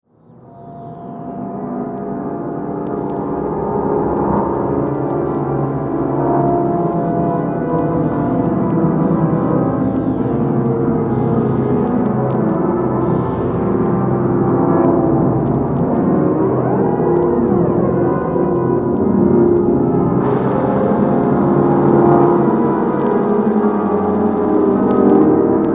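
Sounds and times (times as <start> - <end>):
electroacoustic music: 2.0 - 25.7.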